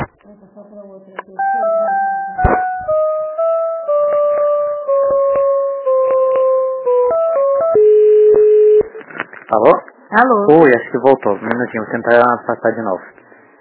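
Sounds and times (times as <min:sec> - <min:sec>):
electronic phone tones during call transfer: 0:01.4 - 0:09.0
speech: 0:10.2 - 0:13.2.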